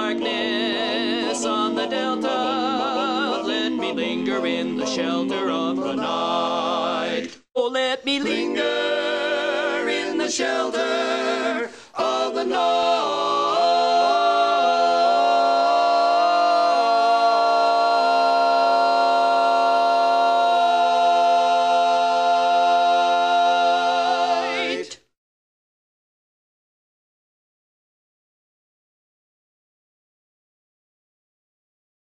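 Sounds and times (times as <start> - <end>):
lead vocal learning track: 0.0 - 25.1.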